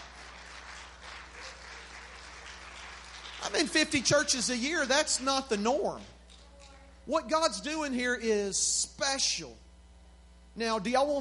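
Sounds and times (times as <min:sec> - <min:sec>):
audience clapping hands: 0:00.0 - 0:06.4
speech: 0:03.5 - 0:06.2, 0:07.1 - 0:09.6, 0:10.6 - 0:11.2.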